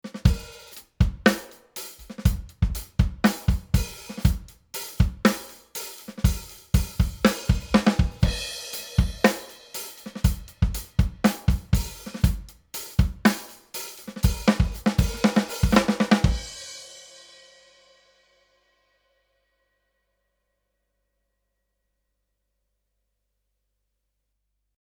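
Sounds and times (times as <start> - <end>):
drums through Rupert Neve Designs 5254: 0.0 - 18.2.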